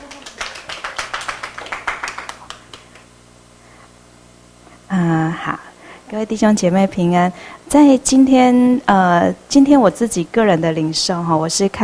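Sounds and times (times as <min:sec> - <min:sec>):
audience applause welcoming speaker: 0:00.0 - 0:03.1
speech: 0:05.0 - 0:11.8.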